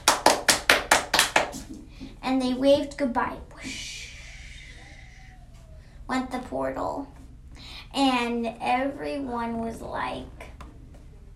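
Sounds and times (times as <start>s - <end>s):
hands clapping: 0.0s - 1.8s
speech: 2.3s - 3.9s, 6.1s - 7.2s, 7.9s - 10.4s.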